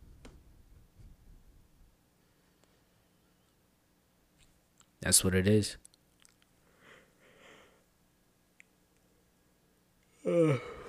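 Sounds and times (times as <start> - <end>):
speech: 5.0 - 5.9
person yawning: 10.1 - 10.8.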